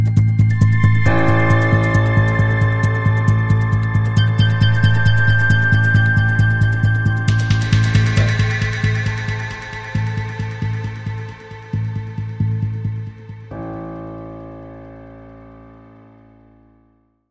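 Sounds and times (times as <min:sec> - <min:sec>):
underscore music: 0:00.1 - 0:16.1.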